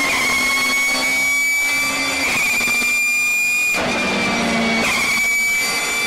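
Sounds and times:
drill: 0.1 - 6.0.

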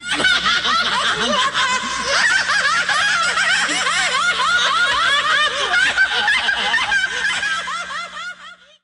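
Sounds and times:
people laughing: 0.0 - 8.8.

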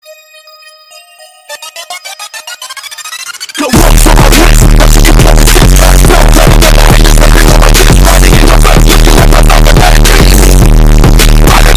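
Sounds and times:
boosted bass: 2.7 - 11.7.

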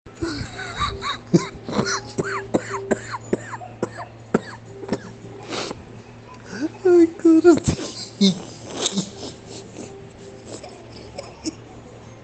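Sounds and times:
person laughing: 0.2 - 3.6, 7.5 - 11.2.

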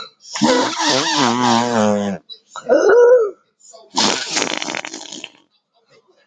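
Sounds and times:
fart button sound: 0.3 - 2.2, 3.9 - 5.4.

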